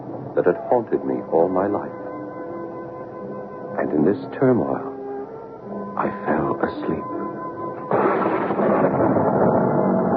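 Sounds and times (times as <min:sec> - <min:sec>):
speech: 0:00.4 - 0:02.0, 0:03.8 - 0:04.9, 0:06.0 - 0:07.2
enormous thunderclap: 0:07.8 - 0:10.1.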